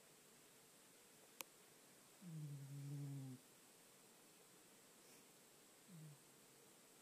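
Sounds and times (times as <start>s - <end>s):
person snoring: 2.2s - 3.4s, 5.9s - 6.2s.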